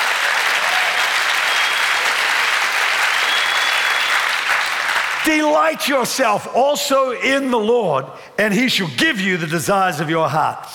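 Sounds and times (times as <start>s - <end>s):
audience applause: 0.0s - 5.6s
speech: 5.2s - 10.7s.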